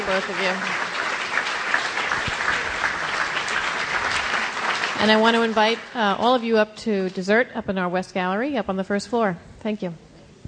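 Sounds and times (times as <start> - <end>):
audience applause: 0.0 - 6.2
speech: 0.1 - 0.8, 5.0 - 10.0.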